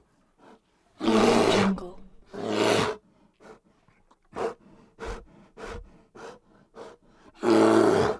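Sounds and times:
Kodiak bear breathing: 0.4s - 8.1s
Kodiak bear roaring: 1.0s - 2.8s.

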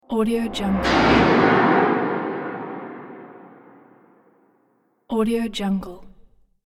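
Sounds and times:
whoosh transition: 0.0s - 4.2s
explosion: 0.3s - 4.2s.

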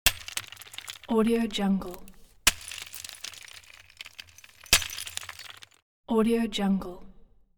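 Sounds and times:
sledgehammer on rocks: 0.0s - 1.2s, 1.8s - 5.8s.

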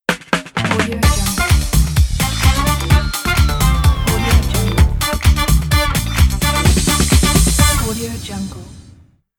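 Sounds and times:
funk groove logo jingle: 0.6s - 8.0s.

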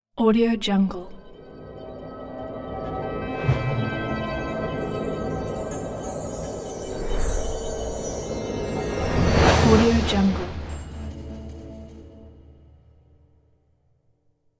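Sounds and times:
simple magical logo sting: 1.3s - 12.4s.

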